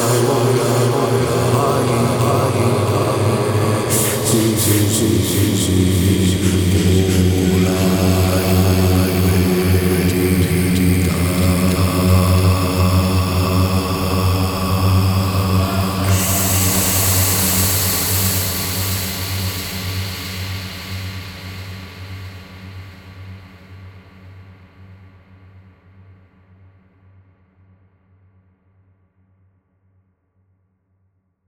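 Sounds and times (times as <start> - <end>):
chanting: 0.0 - 20.2.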